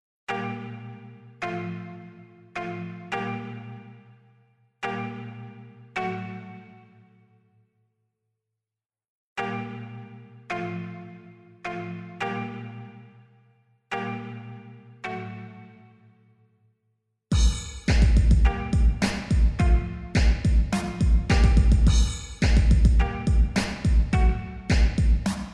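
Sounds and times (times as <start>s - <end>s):
ambient music: 0.3s - 4.0s, 4.8s - 7.3s, 9.4s - 13.2s, 13.9s - 16.3s, 17.4s - 25.4s.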